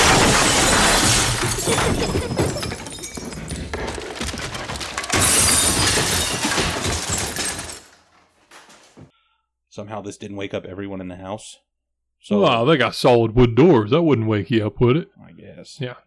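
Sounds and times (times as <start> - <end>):
glass shattering: 0.0 - 9.0
pictures falling from wall: 0.0 - 9.1
speech: 9.8 - 16.0.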